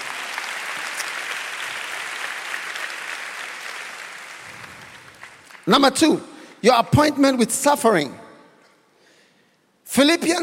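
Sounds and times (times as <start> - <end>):
audience clapping: 0.0 - 6.0
speech: 5.7 - 8.2, 9.9 - 10.4.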